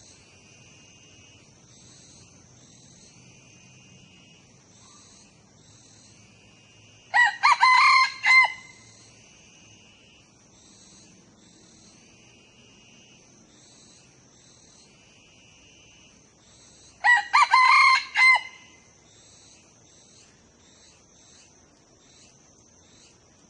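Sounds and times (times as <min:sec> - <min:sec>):
young male red junglefowl crowing: 0:07.1 - 0:08.9, 0:17.0 - 0:18.8.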